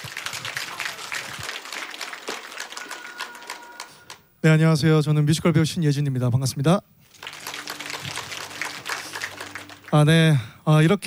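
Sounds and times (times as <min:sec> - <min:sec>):
audience applause: 0:00.0 - 0:04.2, 0:07.1 - 0:10.1
speech: 0:04.4 - 0:07.0, 0:09.9 - 0:11.0.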